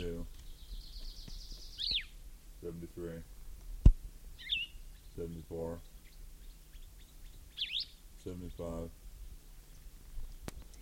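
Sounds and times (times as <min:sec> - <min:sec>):
bird chirping: 0:00.0 - 0:02.8, 0:04.3 - 0:10.0
faint steady hiss: 0:00.0 - 0:10.7
speech: 0:05.2 - 0:05.9, 0:08.2 - 0:09.0.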